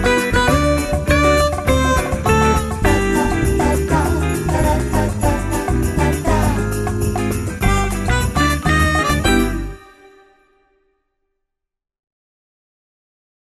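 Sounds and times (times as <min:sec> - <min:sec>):
Christmas song in Brazilian style: 0:00.0 - 0:10.8.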